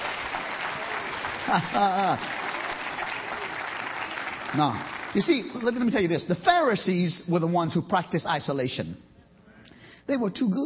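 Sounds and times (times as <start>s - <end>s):
audience clapping: 0.0s - 6.7s
speech: 1.5s - 2.4s, 4.5s - 9.1s, 10.1s - 10.6s.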